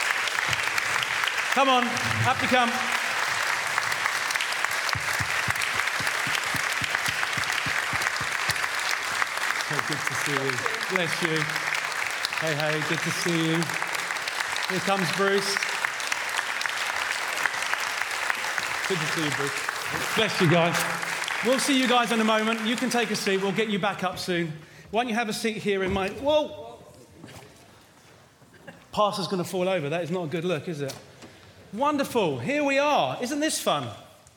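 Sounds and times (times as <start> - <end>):
audience applauding new trustees: 0.0 - 24.1
speech: 1.6 - 3.0, 9.9 - 11.8, 12.4 - 13.8, 14.7 - 15.7, 18.9 - 26.6, 29.0 - 31.1, 31.7 - 34.0.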